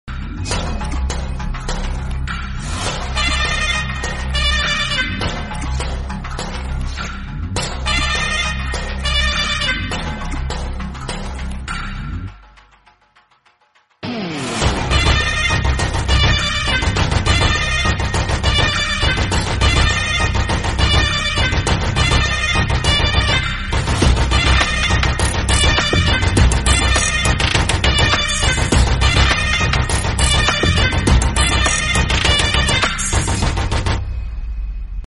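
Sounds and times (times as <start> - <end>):
Tamil entry background music: 0.1 - 35.0.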